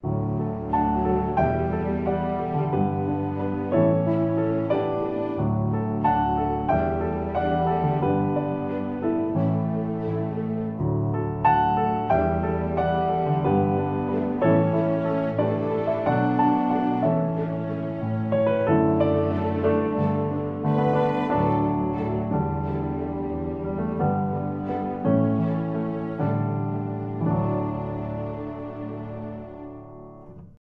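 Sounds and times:
strings: 0.0s - 30.6s.

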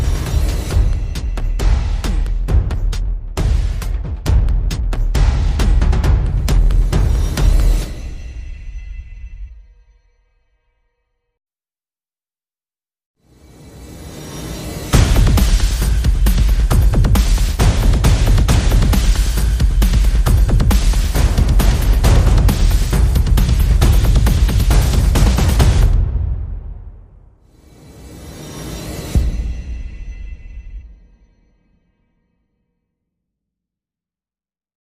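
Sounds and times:
percussion and effects: 0.0s - 9.6s, 13.4s - 31.4s.

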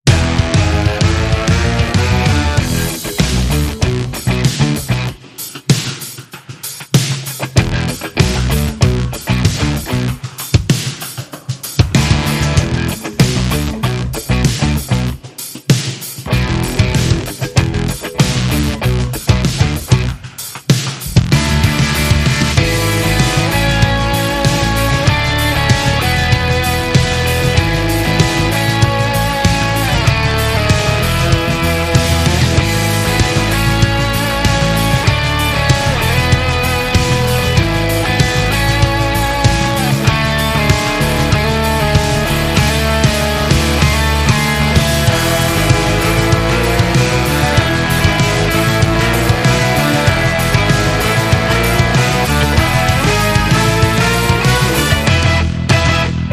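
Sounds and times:
rock music: 0.0s - 56.3s.

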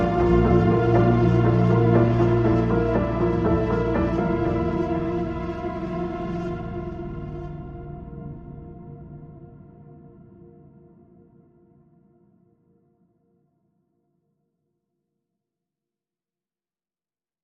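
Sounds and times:
piano effects: 0.0s - 9.5s.

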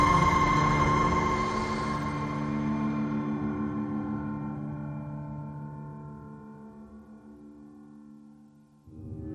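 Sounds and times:
FX drones: 0.0s - 4.9s.

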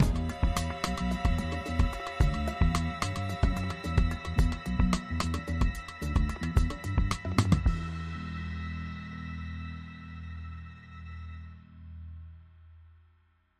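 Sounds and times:
funk music: 0.0s - 11.6s.

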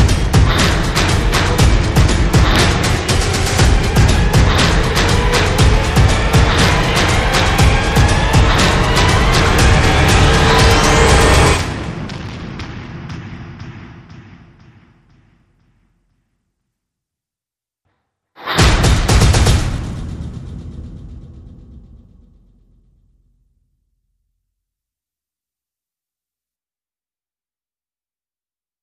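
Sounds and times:
percussion: 0.0s - 16.4s, 18.4s - 22.8s.

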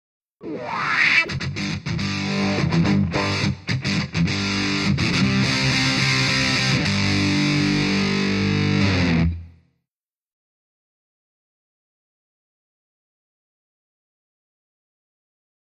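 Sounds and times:
rock music: 0.4s - 9.5s.

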